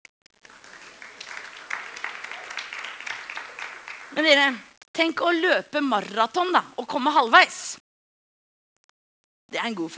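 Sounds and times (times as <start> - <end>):
audience applause: 0.4 - 4.5
speech: 4.2 - 7.8, 9.5 - 9.9.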